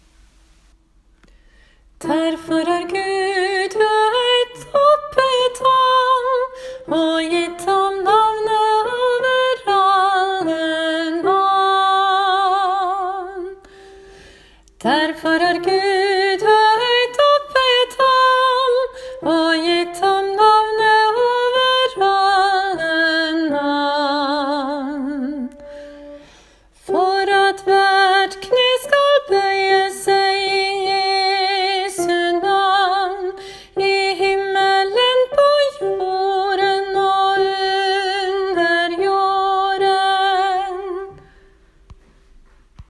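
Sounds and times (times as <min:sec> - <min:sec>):
soprano voice: 0:02.0 - 0:13.7, 0:14.7 - 0:25.8, 0:26.8 - 0:41.4.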